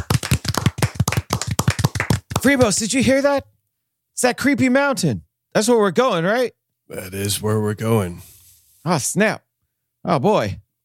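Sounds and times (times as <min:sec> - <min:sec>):
rhythmic crowd clapping: 0:00.0 - 0:02.9
speech: 0:02.4 - 0:03.5, 0:04.2 - 0:09.4, 0:10.0 - 0:10.6.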